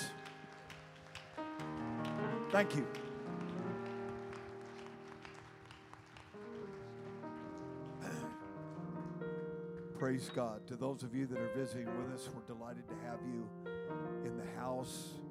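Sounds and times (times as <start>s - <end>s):
audience clapping: 0.0s - 10.3s
speech: 2.5s - 3.0s, 10.0s - 15.2s.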